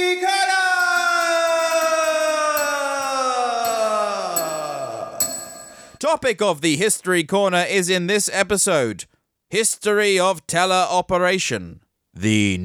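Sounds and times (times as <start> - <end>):
bell ringing: 0.2 - 6.1
bright dings: 0.5 - 6.1
speech: 6.1 - 12.6.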